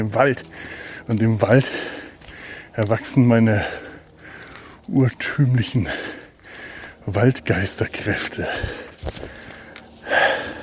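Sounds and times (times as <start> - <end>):
speech: 0.0 - 2.0, 2.8 - 3.8, 4.9 - 6.2, 7.1 - 9.4
person heavy panting while walking in forest: 0.4 - 2.8, 3.5 - 4.9, 5.8 - 7.1, 8.4 - 10.6.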